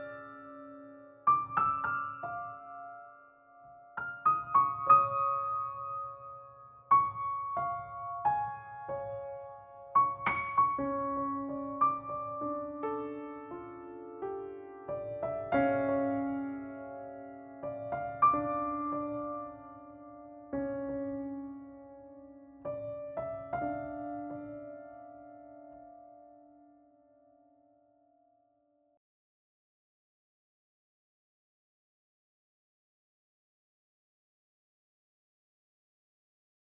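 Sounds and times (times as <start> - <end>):
dramatic piano music: 0.0 - 27.7.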